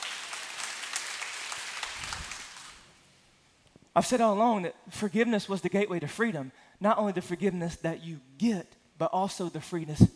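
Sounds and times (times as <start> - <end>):
hand clapping: 0.0 - 3.0
speech: 4.0 - 10.1.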